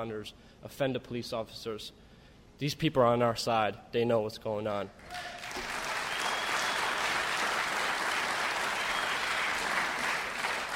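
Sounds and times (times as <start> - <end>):
speech: 0.0 - 5.3
crowd audience applause: 5.1 - 10.7.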